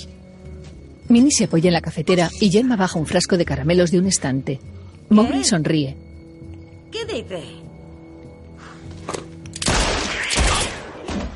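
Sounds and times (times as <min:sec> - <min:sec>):
speech: 0:01.1 - 0:06.1, 0:06.9 - 0:07.6
gunshots indoors in a snowbound mountain lodge: 0:09.6 - 0:11.3.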